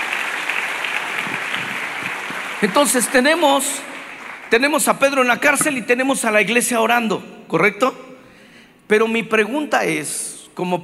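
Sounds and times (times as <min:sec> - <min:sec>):
audience applauding: 0:00.0 - 0:04.7
speech: 0:02.6 - 0:03.9, 0:04.5 - 0:08.1, 0:08.9 - 0:10.8.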